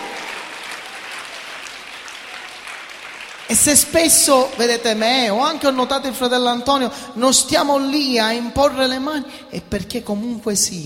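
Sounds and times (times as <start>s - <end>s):
audience applause: 0.0s - 4.3s
speech: 3.5s - 10.8s.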